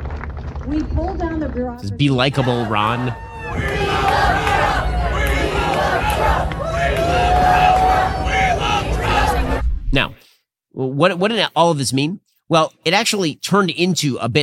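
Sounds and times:
speech: 0.7s - 4.4s, 10.8s - 14.4s
rowdy crowd shouting and jeering at political event: 1.9s - 9.8s.

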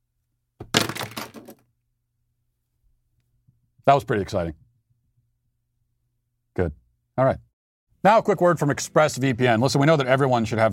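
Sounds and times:
handful of plastic pens clattering down onto a hard surface: 0.7s - 1.6s
speech: 3.9s - 4.6s, 6.6s - 7.4s, 8.0s - 10.7s.

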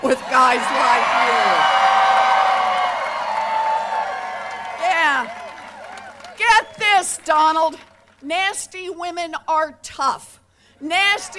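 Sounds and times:
speech: 0.0s - 1.6s, 7.3s - 11.3s
small crowd cheering and whooping at a political rally: 0.0s - 8.2s, 10.9s - 11.3s.

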